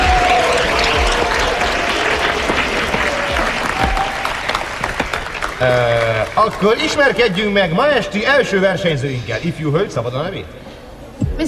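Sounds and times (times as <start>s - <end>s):
faint tonal whistle or cheer: 0.0s - 4.7s
audience applause: 0.0s - 8.0s
speech: 5.6s - 10.6s.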